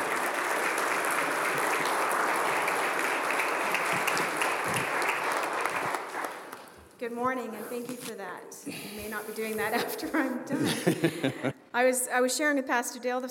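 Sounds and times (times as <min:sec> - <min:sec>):
audience applause: 0:00.0 - 0:06.9
speech: 0:07.1 - 0:13.2
laughter: 0:09.8 - 0:11.6.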